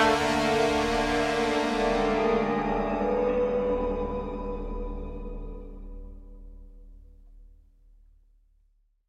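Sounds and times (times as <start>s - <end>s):
spooky end tag music: 0.2s - 6.7s.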